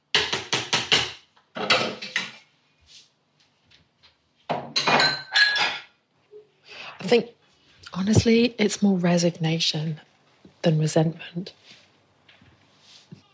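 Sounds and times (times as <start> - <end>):
dishes clinking while unloading a dishwasher: 1.6 - 2.4, 4.5 - 6.0
speech: 7.1 - 11.8.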